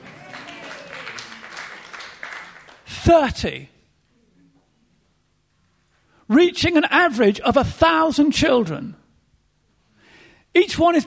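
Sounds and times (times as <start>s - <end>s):
audience clapping: 0.0s - 3.0s
speech: 3.0s - 3.7s, 6.3s - 9.0s, 10.6s - 11.0s.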